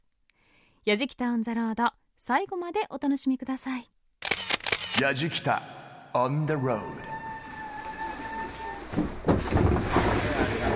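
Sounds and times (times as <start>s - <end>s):
speech: 0.8s - 3.9s, 5.0s - 7.1s, 8.9s - 9.7s
train running: 6.7s - 10.7s.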